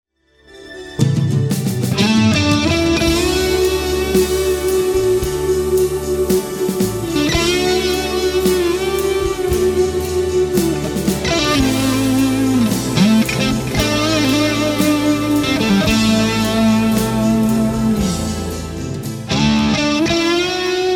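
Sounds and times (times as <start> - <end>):
solo guitar through Celestion 75 speaker: 1.0 - 20.9.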